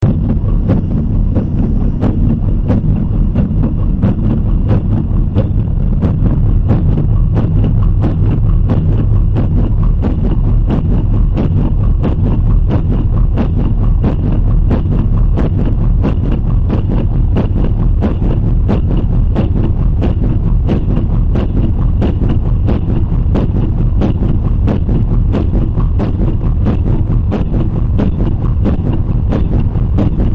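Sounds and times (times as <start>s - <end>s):
deep valves: 0.0s - 30.3s.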